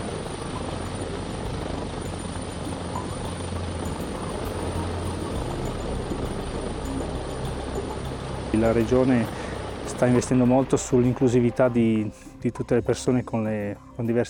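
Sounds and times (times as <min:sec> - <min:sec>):
rescue helicopter on a training flight with Guardia di Finanza personnel: 0:00.0 - 0:14.1
speech: 0:08.6 - 0:09.4, 0:10.0 - 0:14.2.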